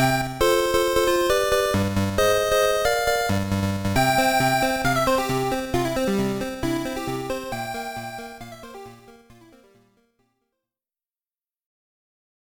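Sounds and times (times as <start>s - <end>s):
background music: 0.0s - 9.8s.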